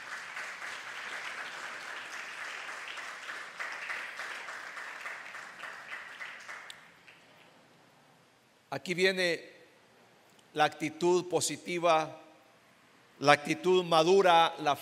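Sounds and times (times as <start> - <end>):
audience applause: 0.0 - 7.4
speech: 8.7 - 9.5, 10.6 - 12.2, 13.2 - 14.8.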